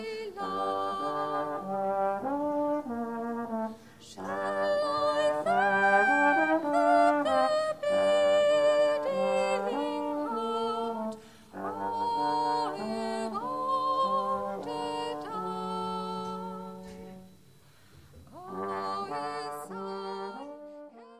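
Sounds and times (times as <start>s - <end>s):
choral singing: 0.0s - 3.4s, 4.0s - 17.3s, 18.3s - 21.1s.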